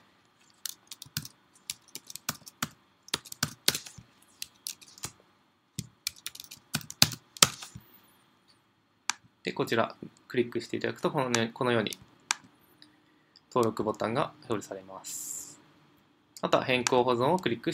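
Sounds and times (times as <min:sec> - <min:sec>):
typing on a computer keyboard into a web form: 0:00.6 - 0:05.1, 0:05.8 - 0:07.7
speech: 0:09.6 - 0:12.1, 0:13.5 - 0:15.3, 0:16.4 - 0:17.7.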